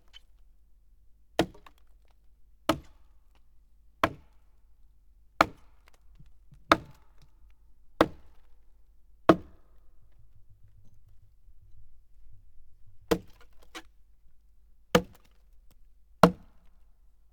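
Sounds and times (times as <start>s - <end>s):
axe chopping: 1.4s - 1.7s, 5.4s - 5.9s, 6.6s - 7.3s, 8.0s - 8.5s, 9.3s - 10.3s, 13.1s - 13.6s, 16.3s - 16.5s.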